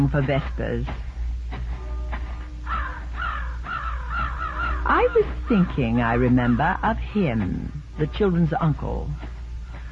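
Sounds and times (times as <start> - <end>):
speech: 0.0 - 1.1, 4.8 - 9.3
rooks cawing overhead: 2.5 - 6.6.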